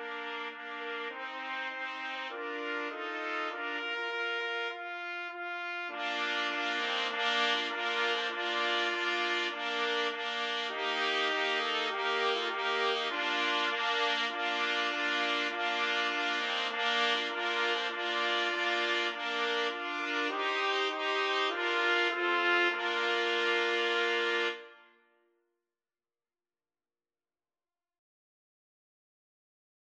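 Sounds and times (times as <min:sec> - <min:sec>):
trumpet quartet playing a hymn: 0:00.0 - 0:24.8.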